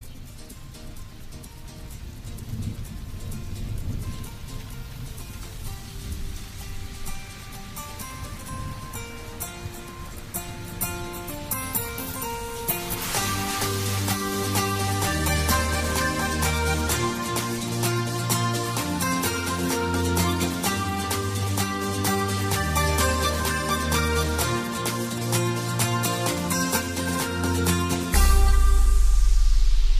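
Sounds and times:
morning ringtone: 11.6 - 29.5.

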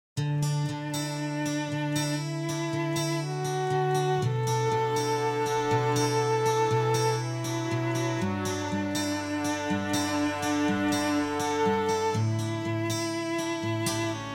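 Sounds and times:
violin: 0.4 - 14.3.

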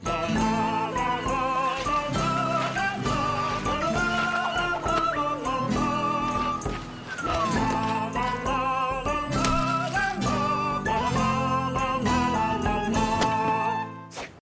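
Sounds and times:
Viking song: 0.0 - 14.1.

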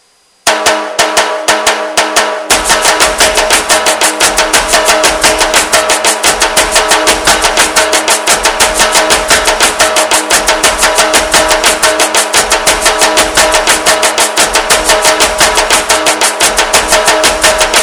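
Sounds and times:
Nasik dhol drumming: 0.5 - 17.8.

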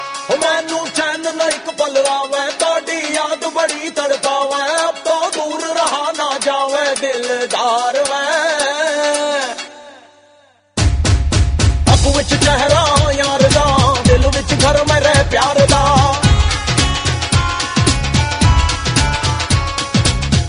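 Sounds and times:
Punjabi music: 0.0 - 20.4.

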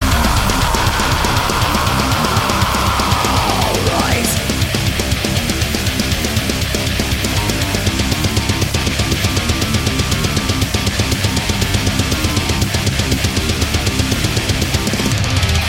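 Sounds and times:
heavy metal intro: 0.0 - 15.6.

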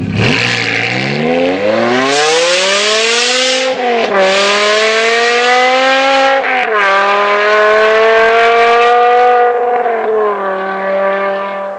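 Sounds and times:
BMW M5 engine: 0.0 - 11.7.

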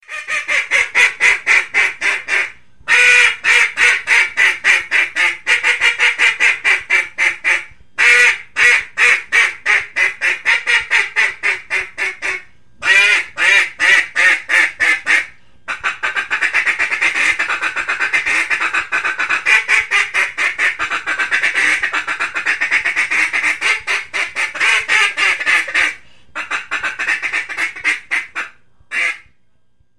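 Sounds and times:
duck call: 0.0 - 29.3.

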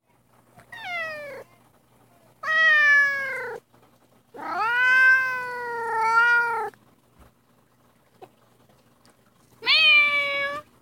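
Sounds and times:
cat meowing: 0.6 - 1.5, 2.4 - 3.6, 4.4 - 6.7, 9.6 - 10.7.

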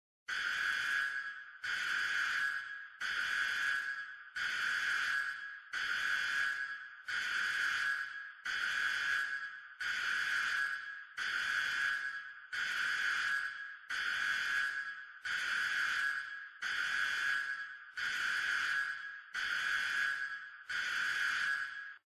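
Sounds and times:
alarm: 0.3 - 22.0.

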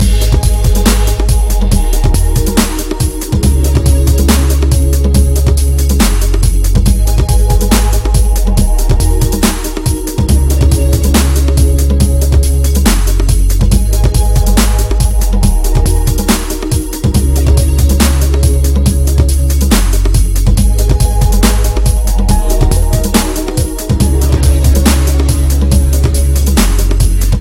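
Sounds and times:
nighttime dub music: 0.0 - 27.4.

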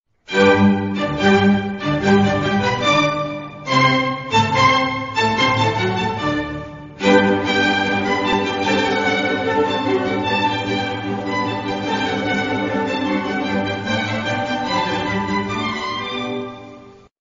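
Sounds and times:
violin solo: 0.3 - 17.1.

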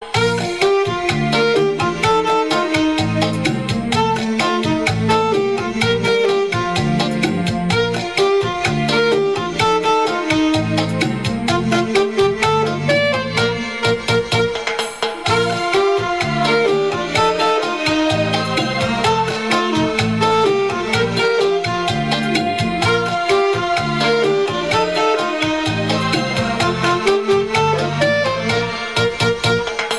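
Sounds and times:
cha cha cha music: 0.0 - 29.9.

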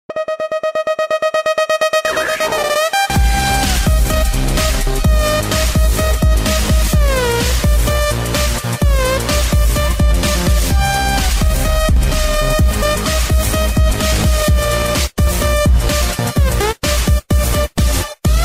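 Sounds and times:
electro house music: 0.1 - 18.4.

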